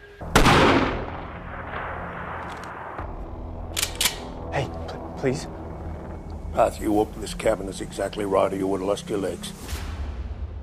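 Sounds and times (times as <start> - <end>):
warning gunshot in the film Northspur: 0.3 - 3.1
speech: 4.6 - 5.6, 6.6 - 9.8.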